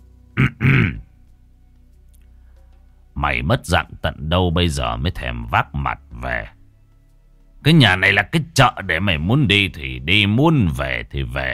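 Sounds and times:
person coughing: 0.4s - 1.1s
speech: 3.2s - 6.6s, 7.6s - 11.5s.

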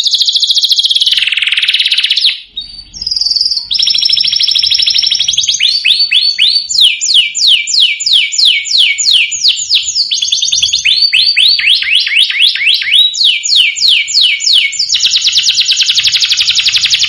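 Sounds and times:
domestic canary song: 0.0s - 17.0s.

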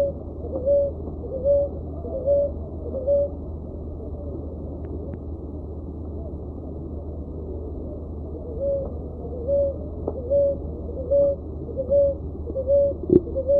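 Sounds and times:
dove uttering short mellow hoot-like notes: 0.0s - 4.4s, 7.4s - 13.5s.

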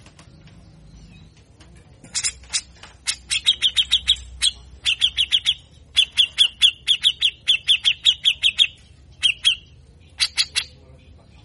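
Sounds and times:
grey-cheeked bulbul giving harsh chirps and rasping sweeps: 2.1s - 10.8s.

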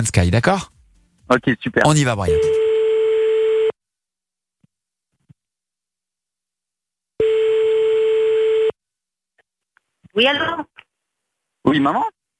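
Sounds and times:
speech: 0.0s - 2.6s, 10.2s - 10.7s, 11.7s - 12.2s
buzzy ringback tone of an outgoing phone call: 2.3s - 3.8s, 7.2s - 8.7s.

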